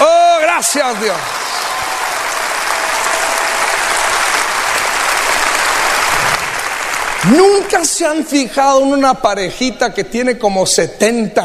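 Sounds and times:
audience applause: 0.0 - 8.2
speech: 0.6 - 1.4, 7.2 - 11.4.

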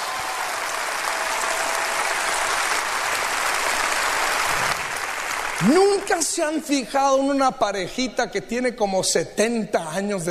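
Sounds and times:
crowd applause: 0.0 - 6.6
speech: 5.6 - 10.2.

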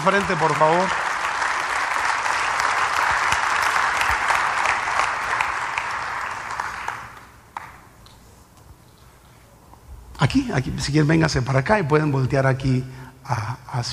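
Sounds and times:
speech: 0.0 - 1.0, 10.2 - 13.9
audience applause: 0.0 - 7.7.

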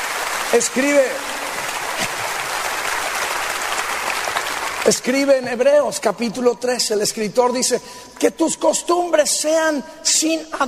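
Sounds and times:
audience clapping: 0.0 - 5.7
speech: 0.5 - 1.4, 4.8 - 10.6.

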